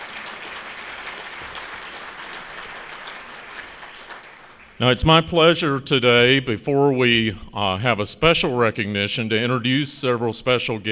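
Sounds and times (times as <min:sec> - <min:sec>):
audience round of applause: 0:00.0 - 0:04.8
speech: 0:04.8 - 0:10.9.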